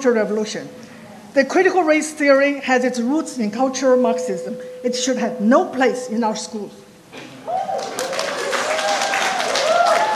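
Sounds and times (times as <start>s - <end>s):
speech: 0.0s - 7.2s
audience applause: 7.5s - 10.1s.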